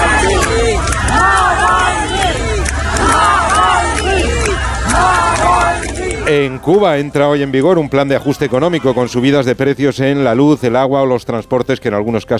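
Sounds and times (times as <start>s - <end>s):
crowd chanting a name outside a church: 0.0s - 9.6s
crowd noise: 0.0s - 12.3s
speech: 6.4s - 12.3s.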